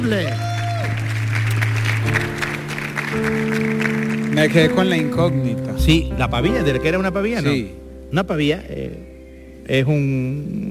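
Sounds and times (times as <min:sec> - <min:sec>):
speech: 0:00.0 - 0:00.5, 0:03.1 - 0:03.6, 0:04.4 - 0:10.6
audience applauding: 0:00.0 - 0:05.6
held musical tones: 0:02.2 - 0:10.4.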